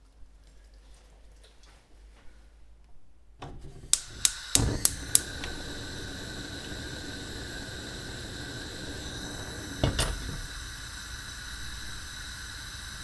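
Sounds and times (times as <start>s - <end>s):
gas cooker igniting in kitchen: 3.5s - 13.0s.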